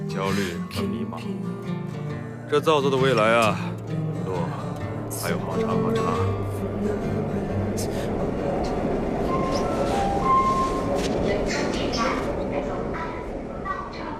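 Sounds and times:
subway train rumbling: 0.0 - 1.9, 2.7 - 14.1
speech: 0.2 - 8.8, 11.2 - 12.3.

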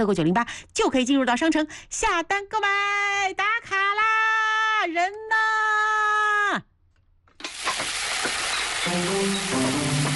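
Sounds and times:
speech: 0.0 - 4.1, 4.8 - 5.8, 8.9 - 9.8
oil frying crisply in a pan: 7.4 - 10.1.

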